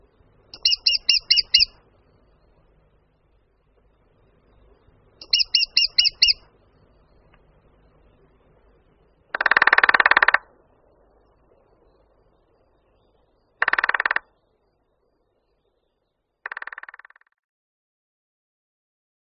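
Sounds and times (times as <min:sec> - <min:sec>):
lesser spotted woodpecker calls: 0:00.6 - 0:01.8, 0:05.2 - 0:06.5, 0:09.3 - 0:10.5, 0:13.6 - 0:14.3, 0:16.4 - 0:17.4.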